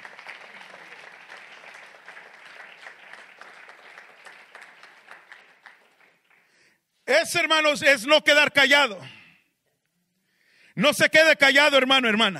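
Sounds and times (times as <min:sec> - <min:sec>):
audience applauding: 0:00.0 - 0:06.7
speech: 0:07.1 - 0:09.2, 0:10.8 - 0:12.3.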